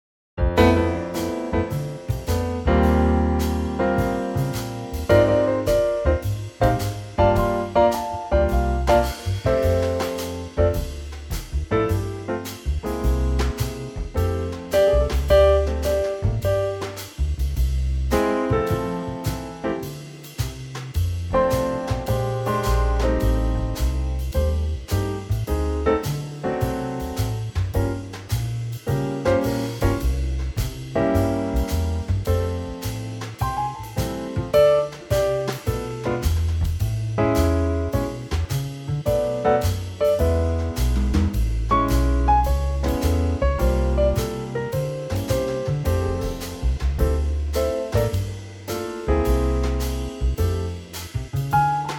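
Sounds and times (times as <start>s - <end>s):
trio music in F: 0.4s - 51.9s.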